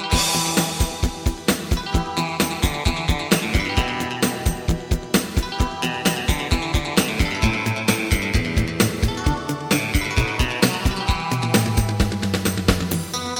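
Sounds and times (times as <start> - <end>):
bass sound: 0.2 - 13.2.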